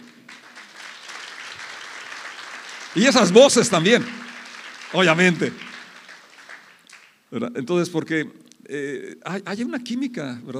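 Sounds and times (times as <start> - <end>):
audience applause: 0.0 - 7.2
speech: 3.0 - 4.2, 4.9 - 5.7, 7.3 - 10.5.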